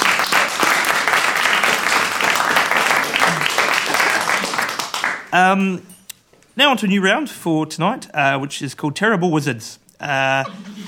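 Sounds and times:
audience applause: 0.0s - 5.2s
speech: 5.3s - 5.9s, 6.6s - 10.8s.

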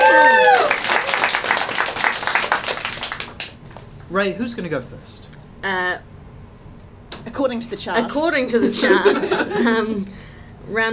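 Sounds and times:
high whoop: 0.0s - 1.4s
round of applause: 0.0s - 3.6s
speech: 4.1s - 6.1s, 7.2s - 10.9s
laughter: 8.6s - 10.0s.

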